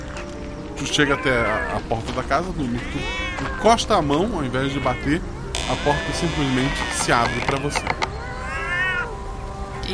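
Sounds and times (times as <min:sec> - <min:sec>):
speech: 0:00.8 - 0:08.1
drawn-out cat meow: 0:02.7 - 0:03.7, 0:04.6 - 0:09.2.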